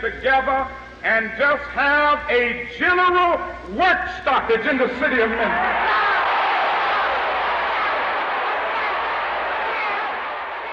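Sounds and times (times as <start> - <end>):
speech: 0.0 - 6.1
people shouting and yelling: 5.5 - 10.7.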